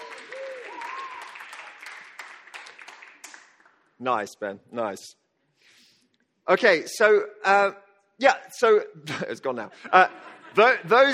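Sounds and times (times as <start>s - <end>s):
audience applause: 0.0s - 3.8s
speech: 4.0s - 5.2s, 6.5s - 11.1s.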